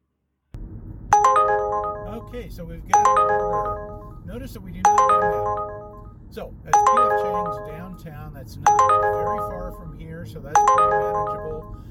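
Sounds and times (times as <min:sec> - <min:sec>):
app notification chime for incoming offer: 0:01.1 - 0:06.1, 0:06.7 - 0:08.0, 0:08.6 - 0:11.8
speech: 0:02.3 - 0:05.7, 0:06.3 - 0:11.8.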